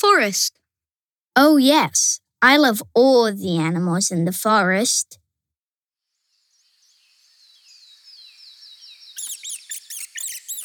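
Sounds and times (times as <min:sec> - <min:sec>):
speech: 0:00.0 - 0:00.6, 0:01.4 - 0:05.2
baby squirrel chattering: 0:09.2 - 0:10.6.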